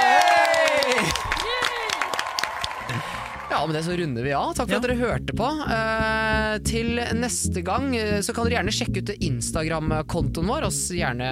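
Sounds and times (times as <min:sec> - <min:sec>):
audience applause: 0:00.0 - 0:03.8
speech: 0:03.6 - 0:11.3.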